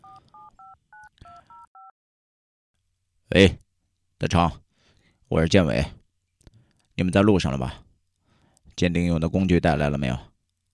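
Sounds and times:
mobile phone keypad dialing beeps: 0:00.0 - 0:01.9
speech: 0:03.3 - 0:03.6, 0:04.2 - 0:04.6, 0:05.3 - 0:06.0, 0:07.0 - 0:07.8, 0:08.8 - 0:10.3.

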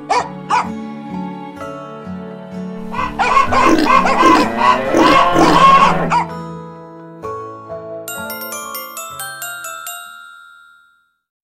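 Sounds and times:
dog barking: 0:00.0 - 0:00.7, 0:02.8 - 0:06.3
cow mooing: 0:02.8 - 0:06.2
hens clucking: 0:02.8 - 0:06.2
pig oinking: 0:02.8 - 0:06.2.

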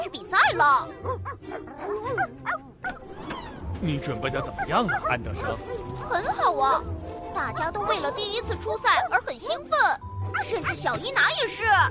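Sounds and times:
small dog barking: 0:01.0 - 0:03.0, 0:04.4 - 0:06.2, 0:09.0 - 0:09.4, 0:10.3 - 0:11.0
speech: 0:03.8 - 0:11.8.

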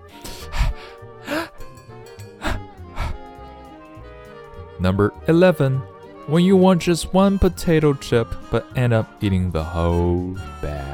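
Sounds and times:
voice acting out a building sneeze with breathy gasps: 0:00.2 - 0:01.7, 0:02.4 - 0:03.3
speech: 0:04.8 - 0:10.8.

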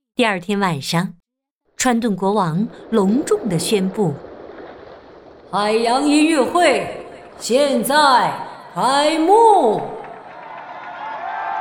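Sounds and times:
speech: 0:00.2 - 0:01.2, 0:01.8 - 0:04.3, 0:05.5 - 0:09.9
audience applauding and cheering: 0:09.9 - 0:11.5.

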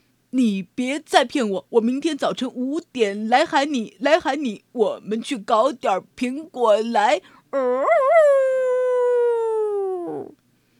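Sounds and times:
speech: 0:00.3 - 0:08.6
wolf's long howl: 0:07.6 - 0:10.4.

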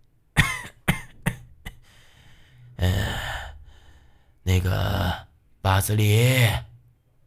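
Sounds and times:
harsh coughs outside: 0:00.4 - 0:01.8
speech: 0:04.5 - 0:06.7.

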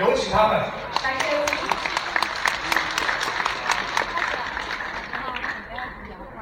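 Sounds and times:
speech: 0:00.2 - 0:01.2
audience applause: 0:00.8 - 0:05.9.

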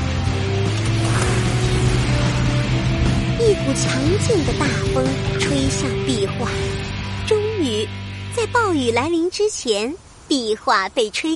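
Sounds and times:
powerful engine droning: 0:00.2 - 0:07.3
speech: 0:03.7 - 0:06.8, 0:08.5 - 0:11.3.

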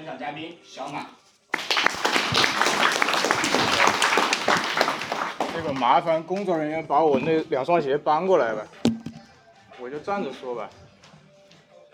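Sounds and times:
speech: 0:00.1 - 0:08.8, 0:09.8 - 0:10.8
audience applause: 0:01.6 - 0:05.8.

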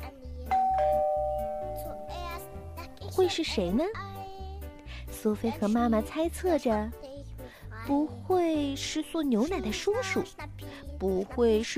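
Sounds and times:
doorbell ringing: 0:00.5 - 0:02.8
speech: 0:03.2 - 0:04.1, 0:05.2 - 0:07.0, 0:07.9 - 0:11.7.

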